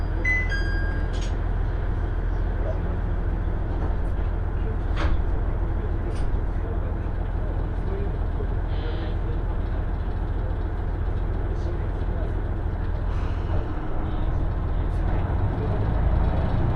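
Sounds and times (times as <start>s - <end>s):
two-car KiHa 110 diesel train engine and running gear rumble: 0.0s - 16.7s
short tonal chime aboard a KiHa 110 diesel train: 0.3s - 1.1s.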